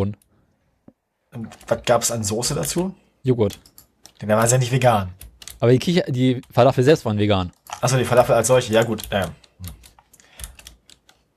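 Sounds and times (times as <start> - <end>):
speech: 0.0 - 0.2, 1.4 - 9.8
typing on a computer keyboard: 1.4 - 2.8, 3.4 - 6.7, 7.5 - 11.3.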